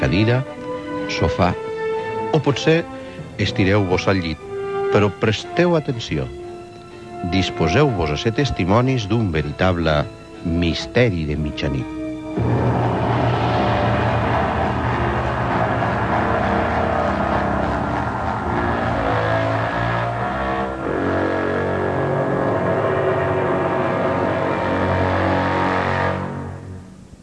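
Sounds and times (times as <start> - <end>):
speech: 0.0 - 1.7, 2.3 - 6.4, 7.2 - 12.7
car engine droning with nobody at the wheel: 12.4 - 26.9.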